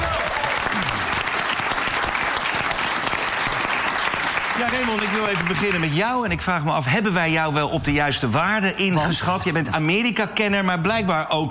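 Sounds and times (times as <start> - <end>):
audience applause: 0.0 - 6.0
speech: 4.6 - 11.4.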